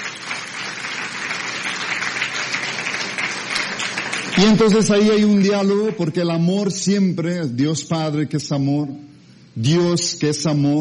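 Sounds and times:
audience applause: 0.0s - 6.0s
speech: 4.4s - 10.8s.

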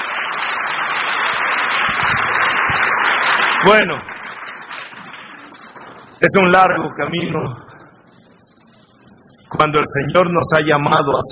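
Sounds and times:
audience applause: 0.0s - 6.1s
speech: 3.6s - 4.1s, 6.2s - 7.6s, 9.6s - 11.3s.

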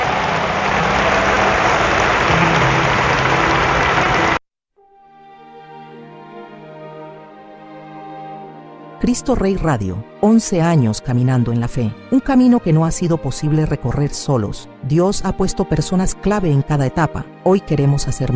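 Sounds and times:
crowd applause: 0.0s - 4.4s
soft music with sustained layered tones: 0.0s - 18.3s
speech: 9.0s - 18.3s.

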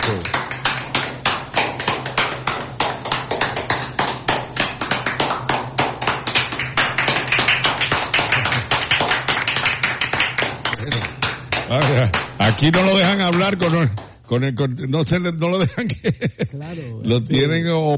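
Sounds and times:
small group clapping in the studio: 0.0s - 14.2s
speech: 11.8s - 17.9s
laughter: 15.6s - 16.6s.

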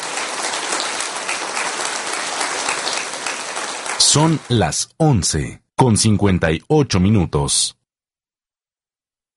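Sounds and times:
sustained applause from a crowd: 0.0s - 4.6s
speech: 4.1s - 7.8s.

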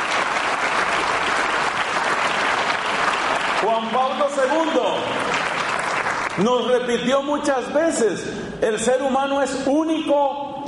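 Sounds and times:
crowd applauding: 0.0s - 6.8s
speech: 3.8s - 5.5s, 6.4s - 10.4s.

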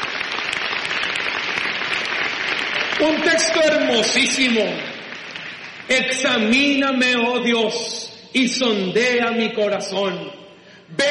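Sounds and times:
church congregation applauding after a Bible reading: 0.0s - 7.6s
speech: 3.0s - 4.9s, 5.9s - 11.1s.

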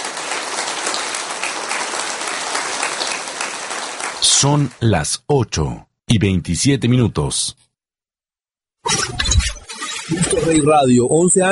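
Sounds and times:
applause: 0.0s - 5.0s
speech: 4.3s - 7.6s, 8.8s - 9.1s, 10.1s - 11.4s.

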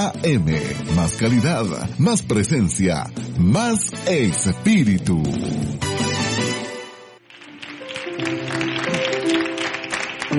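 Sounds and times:
speech: 0.0s - 6.0s
audience applause: 7.2s - 10.3s.

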